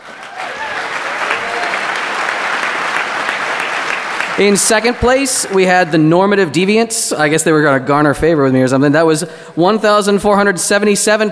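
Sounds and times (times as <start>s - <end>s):
audience applause: 0.0s - 5.9s
speech: 4.4s - 11.3s.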